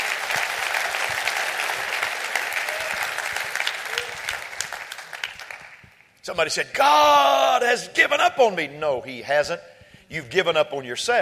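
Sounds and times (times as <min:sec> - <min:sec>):
audience clapping hands: 0:00.0 - 0:06.2
speech: 0:06.3 - 0:11.1.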